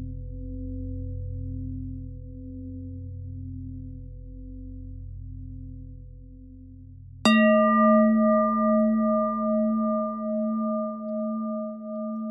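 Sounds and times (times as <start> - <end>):
pentatonic bell melody: 7.3 - 12.2.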